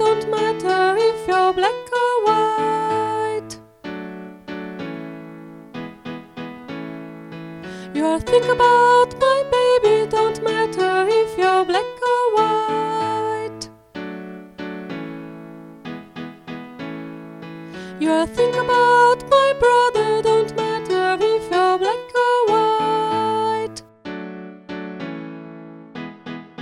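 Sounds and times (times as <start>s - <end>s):
soprano voice in four-voice arrangement singing: 0.0s - 3.6s, 7.8s - 13.7s, 17.8s - 23.9s.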